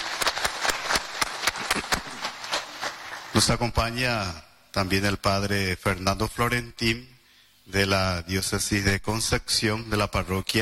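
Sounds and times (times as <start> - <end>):
rhythmic crowd applause: 0.0 - 3.5
speech: 3.4 - 7.1, 7.7 - 10.6.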